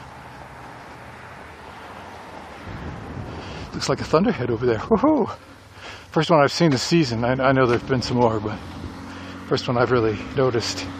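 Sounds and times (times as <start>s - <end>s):
wind blowing from the north across the microphone: 2.3s - 4.1s
speech: 3.8s - 8.8s, 9.5s - 10.9s.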